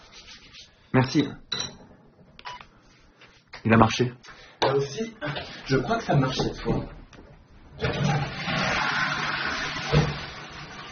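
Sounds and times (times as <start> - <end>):
speech: 1.0 - 1.5, 3.6 - 7.0
toilet flushing after repair: 5.2 - 6.8, 7.7 - 10.9.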